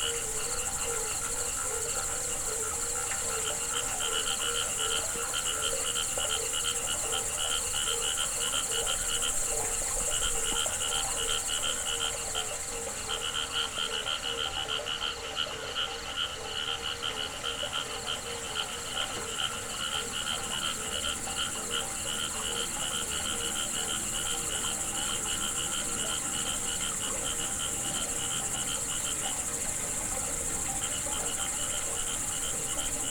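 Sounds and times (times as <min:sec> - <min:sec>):
cricket trill: 0:00.0 - 0:33.0
frog chorus croaking: 0:00.0 - 0:33.0.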